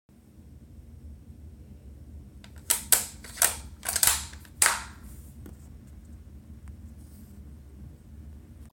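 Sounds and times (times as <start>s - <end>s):
sniper rifle bolt action: 2.5s - 5.0s.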